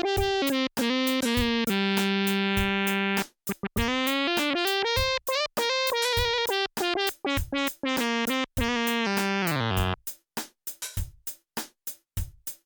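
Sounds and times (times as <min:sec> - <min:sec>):
lead melody: 0:00.0 - 0:10.0.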